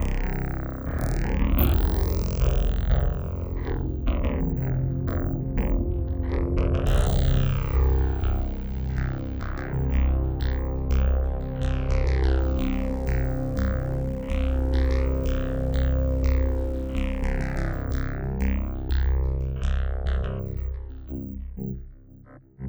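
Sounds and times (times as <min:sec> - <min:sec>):
FM synthesizer: 0:00.0 - 0:22.2.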